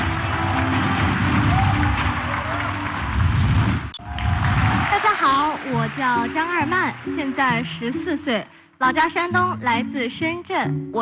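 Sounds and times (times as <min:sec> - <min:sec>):
audience applause welcoming contestants: 0:00.0 - 0:07.7
speech: 0:06.0 - 0:11.0.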